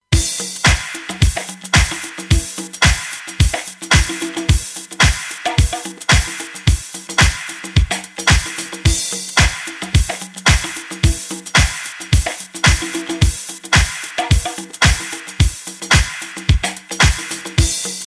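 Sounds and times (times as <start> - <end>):
beat mastered with limiter: 0.0 - 18.0.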